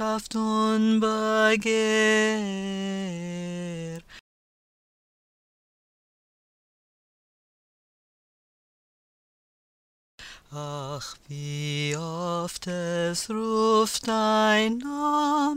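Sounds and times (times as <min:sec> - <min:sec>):
tenor singing verses and refrain: 0:00.0 - 0:04.1, 0:10.5 - 0:15.5.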